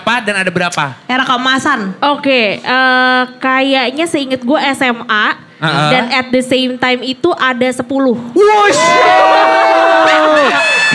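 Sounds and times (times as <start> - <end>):
speech: 0.1 - 10.9
crowd cheering: 8.4 - 10.9.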